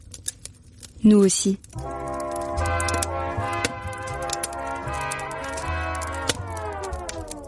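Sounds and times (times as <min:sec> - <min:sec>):
bonfire crackling with sharp pops and snaps: 0:00.0 - 0:07.4
speech: 0:01.0 - 0:02.0
low droning bass: 0:01.8 - 0:07.4
steady sustained musical tones: 0:01.8 - 0:07.4.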